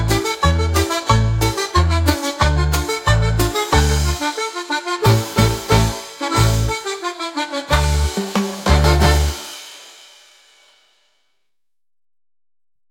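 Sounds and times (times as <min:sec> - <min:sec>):
tango music: 0:00.0 - 0:09.6.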